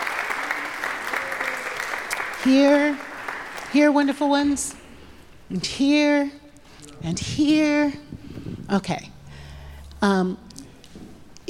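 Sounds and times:
audience clapping to welcome visitors: 0:00.0 - 0:04.3
speech: 0:02.4 - 0:03.1, 0:03.7 - 0:04.8, 0:05.5 - 0:06.4, 0:07.0 - 0:08.1, 0:08.7 - 0:09.1, 0:10.0 - 0:10.4.

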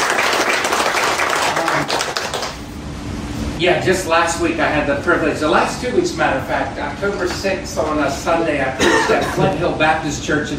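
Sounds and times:
audience giving loud round of applause: 0:00.0 - 0:02.6
speech: 0:03.6 - 0:10.5.

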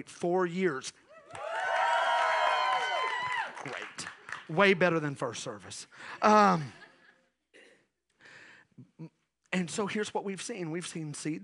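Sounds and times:
speech: 0:00.0 - 0:01.4, 0:03.6 - 0:06.8, 0:09.0 - 0:11.4
church audience cheering: 0:01.2 - 0:04.2.

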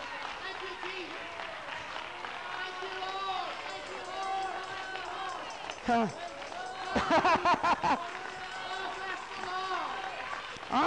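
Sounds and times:
large crowd clapping: 0:00.0 - 0:10.8
large crowd shouting: 0:02.5 - 0:10.8
speech: 0:05.9 - 0:06.3, 0:07.1 - 0:08.2
laughter: 0:06.5 - 0:09.2.

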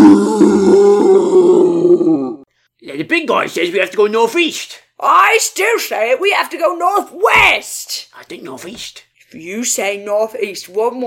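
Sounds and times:
person imitating a monster's roar: 0:00.0 - 0:02.5
speech: 0:03.2 - 0:11.0.

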